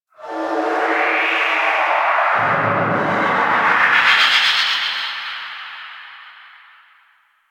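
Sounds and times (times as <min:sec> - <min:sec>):
undercroft tonal shriek with reverb: 0:00.2 - 0:05.0.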